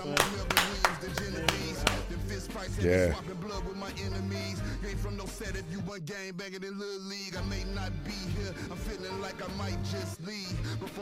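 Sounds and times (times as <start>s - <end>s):
hands clapping: 0.0s - 2.2s
speech: 2.6s - 10.9s.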